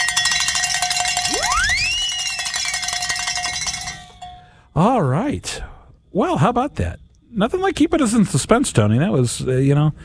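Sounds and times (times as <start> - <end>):
bell rung in celebration: 0.0 - 4.6
rising whistle-like tone: 1.2 - 3.0
speech: 4.8 - 10.0.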